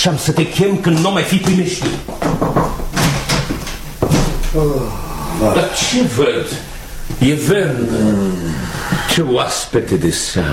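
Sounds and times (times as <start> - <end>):
speech: 0.0 - 2.8, 4.6 - 10.5
knocking on a door: 1.4 - 4.5.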